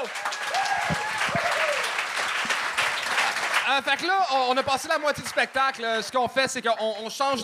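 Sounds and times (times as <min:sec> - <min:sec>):
whistles and cheers: 0:00.0 - 0:02.1
live audience applause for a comedian: 0:00.0 - 0:06.1
speech: 0:03.7 - 0:07.4.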